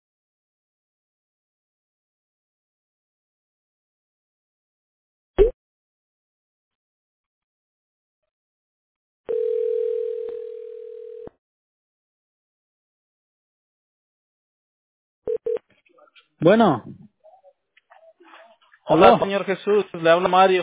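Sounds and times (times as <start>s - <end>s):
telephone tone after a call drops: 9.3s - 11.4s, 15.3s - 15.6s
speech: 16.4s - 17.0s, 18.9s - 20.6s.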